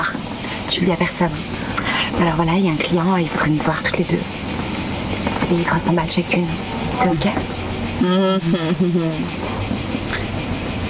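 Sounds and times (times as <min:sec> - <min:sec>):
crickets chirping: 0:00.0 - 0:10.8
speech: 0:00.8 - 0:04.6, 0:05.5 - 0:09.9.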